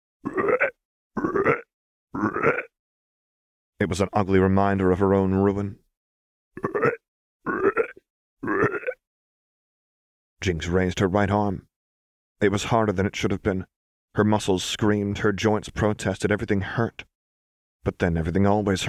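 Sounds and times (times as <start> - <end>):
loud guttural croak: 0.2 - 2.8, 6.6 - 9.0
speech: 3.8 - 5.9, 10.4 - 11.7, 12.4 - 17.1, 17.8 - 18.8.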